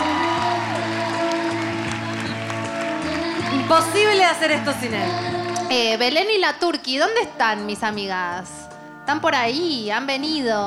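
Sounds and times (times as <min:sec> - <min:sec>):
audience applause: 0:00.0 - 0:04.3
speech: 0:03.7 - 0:10.6.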